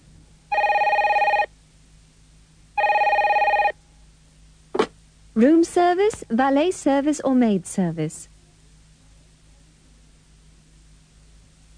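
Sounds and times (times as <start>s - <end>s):
telephone ringing: 0.5s - 1.5s, 2.8s - 3.8s
speech: 5.4s - 8.3s.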